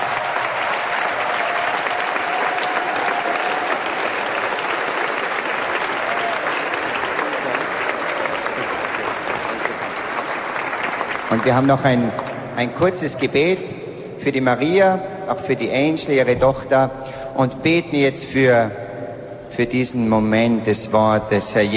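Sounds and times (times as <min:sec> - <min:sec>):
sizable audience applause welcoming a guest: 0:00.0 - 0:12.3
speech: 0:11.4 - 0:18.8, 0:19.6 - 0:21.7.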